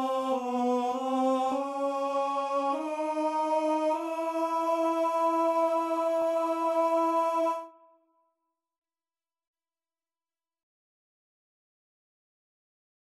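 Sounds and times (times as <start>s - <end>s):
tenor singing: 0.0s - 7.8s.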